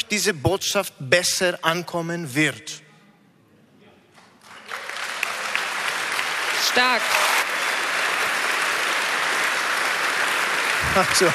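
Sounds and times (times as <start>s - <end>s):
speech: 0.1s - 2.8s, 6.8s - 7.3s, 10.9s - 11.3s
audience applause: 4.4s - 11.3s.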